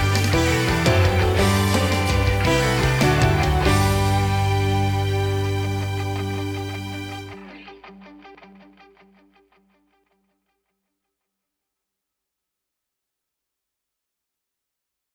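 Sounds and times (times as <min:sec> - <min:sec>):
instrumental song without vocals: 0:00.0 - 0:07.6.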